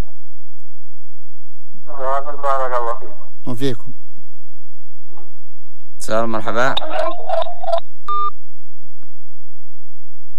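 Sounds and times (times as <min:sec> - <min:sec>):
speech: 0:02.0 - 0:04.0, 0:06.1 - 0:08.5
telephone line tones after a radio phone-in call drops: 0:06.7 - 0:08.3.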